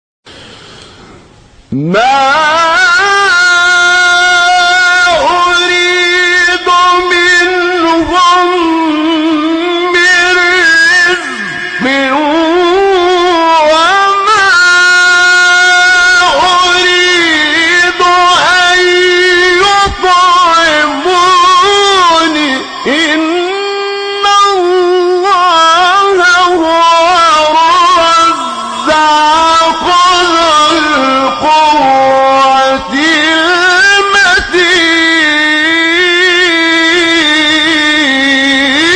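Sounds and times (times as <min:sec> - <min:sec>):
beautiful recitation of a verse of a surah: 0:01.7 - 0:38.9.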